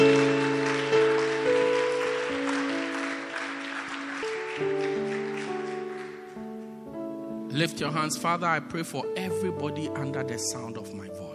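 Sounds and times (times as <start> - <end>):
audience clapping: 0.0 - 6.7
sustained organ or keyboard chords: 0.0 - 11.3
speech: 7.6 - 11.3.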